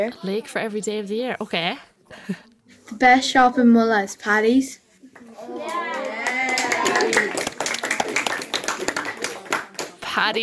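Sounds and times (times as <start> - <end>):
speech: 0.0 - 4.8, 5.4 - 6.2, 10.2 - 10.4
children clapping: 5.2 - 10.3
children cheering: 5.3 - 8.0.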